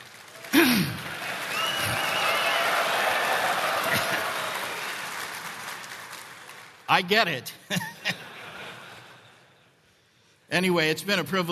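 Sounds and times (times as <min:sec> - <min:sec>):
large audience applause: 0:00.0 - 0:06.9
laughter: 0:03.6 - 0:04.5, 0:07.6 - 0:09.5
speech: 0:07.0 - 0:07.9, 0:10.5 - 0:11.5.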